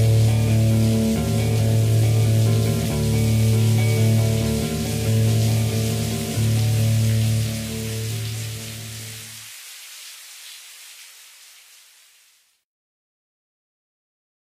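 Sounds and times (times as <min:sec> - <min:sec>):
instrumental music: 0:00.0 - 0:09.2.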